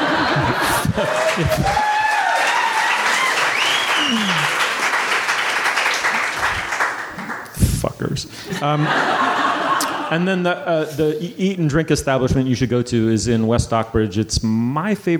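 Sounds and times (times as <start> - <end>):
laughter: 0.0 - 2.2, 8.4 - 10.6
audience applause: 0.0 - 7.5
speech: 1.0 - 2.0, 8.0 - 9.2, 10.1 - 15.1.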